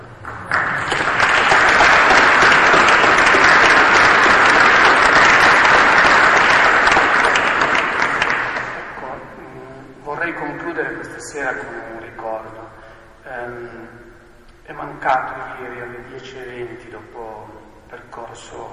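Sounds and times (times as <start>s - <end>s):
audience applause: 0.2s - 9.0s.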